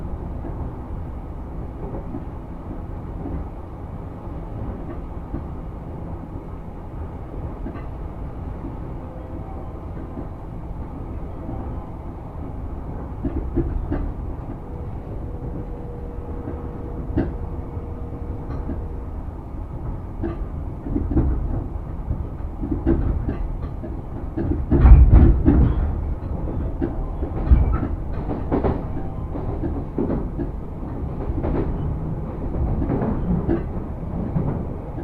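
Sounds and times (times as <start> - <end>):
Sotetsu through line train rumble: 0.0 - 35.0
clacks and thumps: 19.8 - 35.0.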